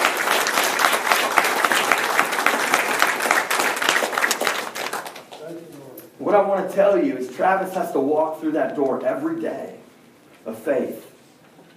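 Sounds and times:
crowd of people clapping hands: 0.0s - 5.6s
speech: 6.3s - 9.8s, 10.4s - 11.0s.

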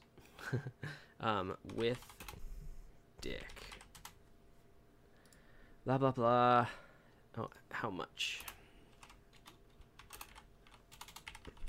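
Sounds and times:
speech: 0.5s - 2.2s, 3.2s - 3.7s, 5.8s - 6.8s, 7.4s - 8.5s
typing on a computer keyboard: 1.7s - 2.4s, 3.3s - 4.2s, 8.4s - 11.6s.

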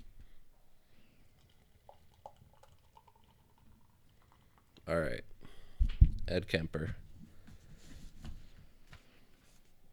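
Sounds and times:
beer pouring into a glass: 1.2s - 4.9s
speech: 4.9s - 5.3s, 6.3s - 7.0s.

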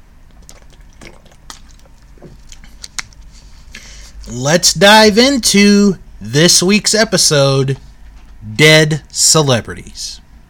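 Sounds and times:
sipping and swallowing water: 0.3s - 4.3s
speech: 4.3s - 7.8s, 8.4s - 10.2s.

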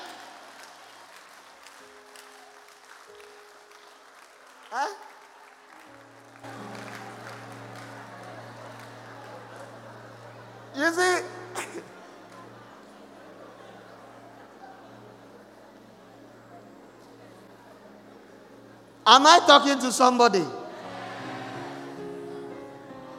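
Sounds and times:
crowd clapping: 0.0s - 13.2s, 20.7s - 23.1s
speech: 4.7s - 5.1s, 10.8s - 11.3s, 19.1s - 20.6s
laughter: 6.4s - 17.2s, 19.9s - 23.1s.

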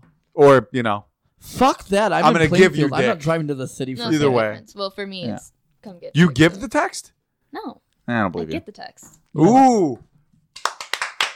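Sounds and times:
speech: 0.4s - 10.1s
sharp hand claps: 10.6s - 11.3s.

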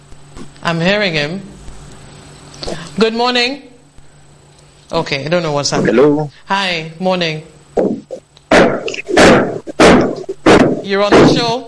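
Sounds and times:
speech: 0.6s - 1.6s, 2.7s - 3.7s, 4.9s - 8.0s, 10.9s - 11.6s
hammering: 7.9s - 11.6s.

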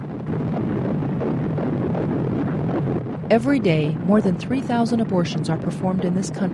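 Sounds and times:
unborn baby's heartbeat through a monitor: 0.0s - 4.3s
speech: 3.3s - 6.5s.

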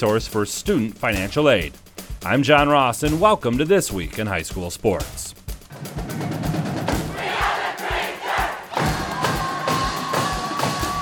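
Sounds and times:
speech: 0.0s - 6.3s
heavy rhythmic thumps: 0.0s - 11.0s
Traverse City West Bleacher Creatures student fan section cheering: 7.1s - 11.0s.

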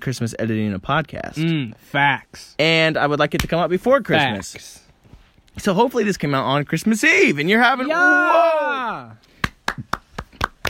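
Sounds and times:
speech: 0.0s - 4.8s, 5.6s - 9.9s
hand claps: 9.2s - 10.6s.

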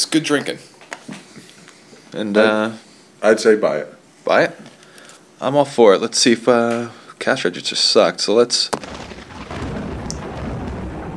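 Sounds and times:
speech: 0.1s - 0.7s, 2.1s - 4.7s, 5.4s - 9.1s
thunderclap: 8.8s - 11.1s.

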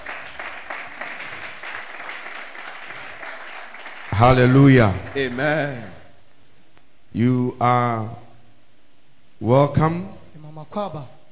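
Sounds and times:
church congregation clapping: 0.0s - 6.1s
speech: 4.2s - 6.0s, 7.1s - 8.2s, 9.4s - 11.2s.

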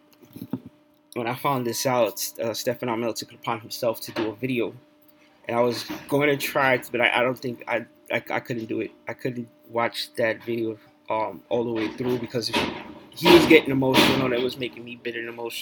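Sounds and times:
speech: 1.2s - 4.9s, 5.5s - 15.5s
heavy thuds: 11.7s - 15.4s
metallic bangs and clatter from dumpster work: 11.7s - 15.5s.

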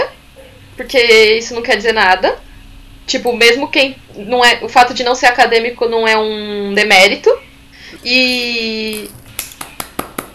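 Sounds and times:
speech: 0.8s - 2.4s, 3.1s - 7.4s, 8.0s - 9.2s
hands clapping: 9.3s - 10.3s.

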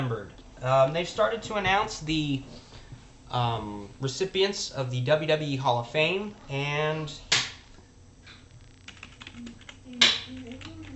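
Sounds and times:
speech: 0.0s - 2.6s, 3.3s - 7.3s
typing on a computer keyboard: 8.9s - 10.9s.

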